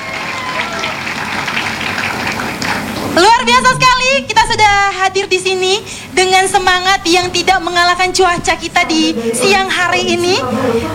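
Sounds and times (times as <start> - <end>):
audience applause: 0.0 - 3.2
speech: 3.2 - 10.9.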